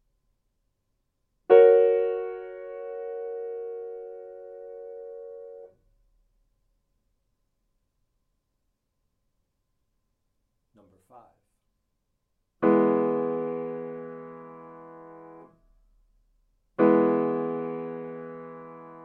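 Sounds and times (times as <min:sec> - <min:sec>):
chords: 0:01.5 - 0:05.7, 0:12.6 - 0:15.4, 0:16.8 - 0:19.0.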